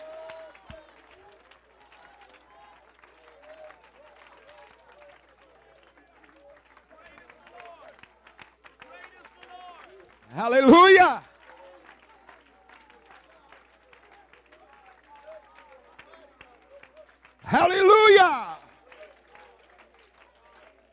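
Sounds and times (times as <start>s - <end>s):
audience clapping: 0.0s - 20.9s
audience shouting: 10.3s - 11.2s, 17.4s - 18.7s
speech: 10.4s - 11.3s.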